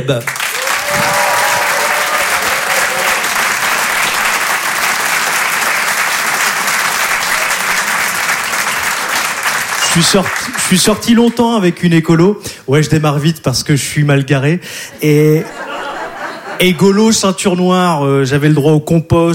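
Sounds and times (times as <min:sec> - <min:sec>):
speech: 0:00.0 - 0:01.1, 0:10.0 - 0:15.6, 0:16.6 - 0:19.3
comedy club audience applause: 0:00.2 - 0:11.3
laughter: 0:15.0 - 0:17.0.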